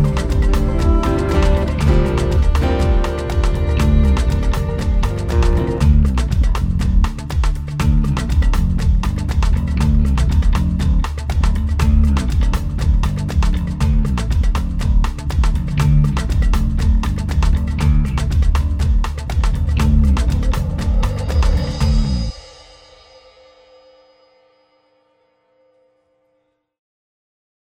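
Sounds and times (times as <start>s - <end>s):
acoustic boogie music: 0.0s - 21.6s.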